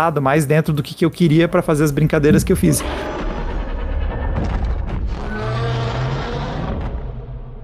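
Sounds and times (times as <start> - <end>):
speech: 0.0 - 3.3
giant monster scream sound effect: 2.7 - 7.3.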